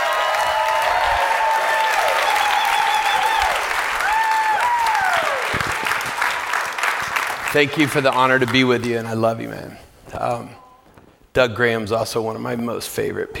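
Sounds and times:
whistles and cheers: 0:00.0 - 0:06.6
audience clapping: 0:00.0 - 0:09.2
speech: 0:07.6 - 0:10.6, 0:11.4 - 0:13.3.

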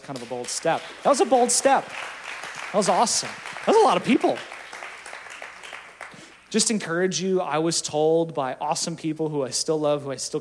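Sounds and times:
speech: 0:00.0 - 0:04.6, 0:06.5 - 0:10.3
audience clapping: 0:00.0 - 0:06.9.

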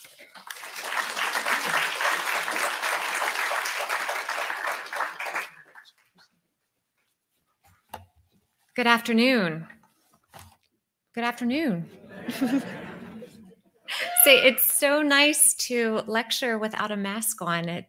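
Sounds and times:
audience applause welcoming a lecturer at a VMHC history talk: 0:00.0 - 0:06.1
speech: 0:08.8 - 0:09.8, 0:11.2 - 0:12.8, 0:14.2 - 0:17.8
laughter: 0:11.9 - 0:14.4.

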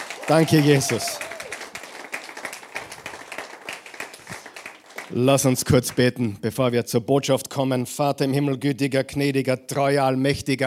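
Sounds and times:
audience applause: 0:00.0 - 0:05.7
speech: 0:00.3 - 0:01.3, 0:05.2 - 0:10.6.

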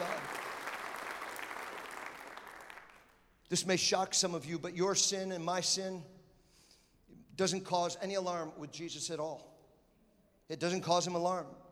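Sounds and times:
audience applause: 0:00.0 - 0:03.1
speech: 0:03.5 - 0:06.2, 0:07.4 - 0:09.5, 0:10.5 - 0:11.6.

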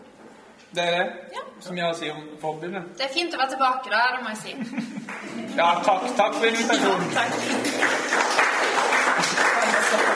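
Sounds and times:
speech: 0:00.7 - 0:10.1
laughter: 0:04.6 - 0:08.1, 0:09.0 - 0:10.1
audience applause: 0:05.1 - 0:10.1.

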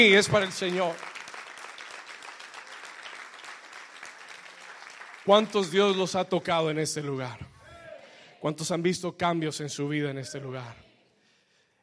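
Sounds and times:
speech: 0:00.0 - 0:01.1, 0:05.3 - 0:07.5, 0:08.4 - 0:10.8
audience applause: 0:00.0 - 0:06.1.

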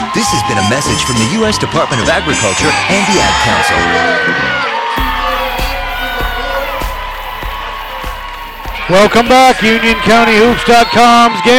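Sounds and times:
riled-up crowd cheering and shouting at a girls' high school basketball game: 0:00.0 - 0:11.5
speech: 0:00.2 - 0:04.7, 0:08.9 - 0:11.5.

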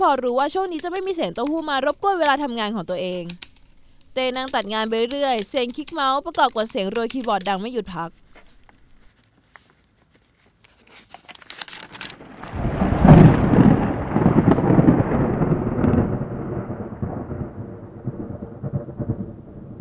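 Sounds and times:
speech: 0:00.0 - 0:03.5, 0:04.2 - 0:08.2
thunder rumbling: 0:12.2 - 0:19.7.

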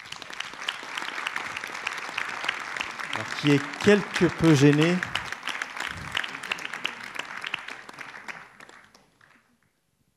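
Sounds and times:
audience applause: 0:00.0 - 0:09.6
speech: 0:03.2 - 0:05.1.

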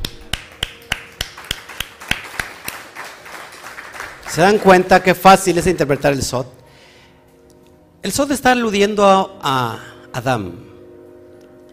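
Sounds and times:
applause: 0:00.0 - 0:06.2
speech: 0:04.4 - 0:06.6, 0:08.0 - 0:10.7.

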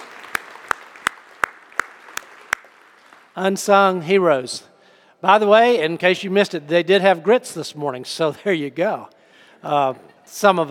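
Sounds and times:
hands clapping for a crew at a church service: 0:00.0 - 0:03.4
speech: 0:03.4 - 0:10.6.

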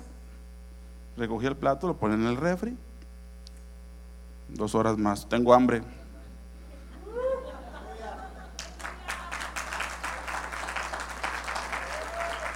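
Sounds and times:
low steady hum: 0:00.0 - 0:12.5
speech: 0:01.2 - 0:02.9, 0:04.5 - 0:06.0
laughter: 0:05.9 - 0:11.0
audience applause: 0:08.0 - 0:12.5.

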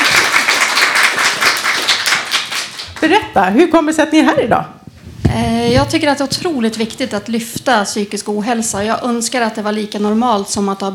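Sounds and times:
audience applause: 0:00.0 - 0:02.9
speech: 0:03.1 - 0:10.9.

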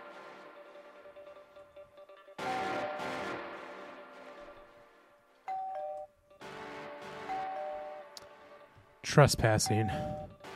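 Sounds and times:
doorbell ringing: 0:02.4 - 0:03.2, 0:05.5 - 0:06.1, 0:07.3 - 0:08.1, 0:09.6 - 0:10.4
speech: 0:09.1 - 0:10.3.

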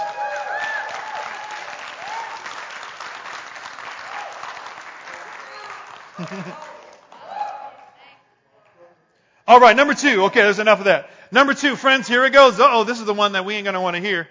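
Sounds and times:
whoops and cheers: 0:00.0 - 0:02.6, 0:04.0 - 0:04.7, 0:05.4 - 0:07.9
audience applause: 0:00.0 - 0:07.4
laughter: 0:06.1 - 0:07.0
speech: 0:06.2 - 0:06.8, 0:09.5 - 0:14.2.

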